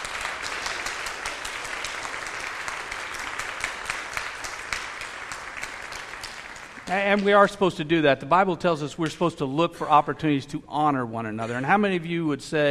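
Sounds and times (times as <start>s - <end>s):
audience applause: 0.0s - 7.5s
speech: 6.9s - 12.6s.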